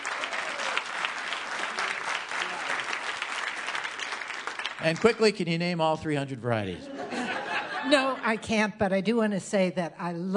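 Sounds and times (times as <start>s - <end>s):
audience applause: 0.0s - 6.0s
speech: 4.8s - 7.0s, 7.8s - 10.3s
laughter: 6.7s - 8.4s.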